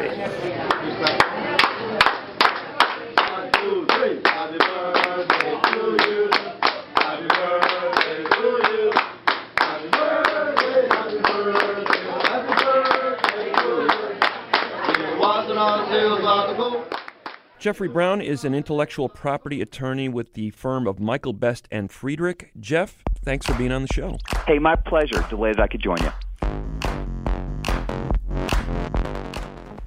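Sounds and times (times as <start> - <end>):
restaurant staff clapping in rhythm: 0.7 - 15.1, 16.9 - 17.6, 23.2 - 29.8
restaurant staff singing a birthday song together: 3.2 - 17.0
speech: 17.6 - 26.8.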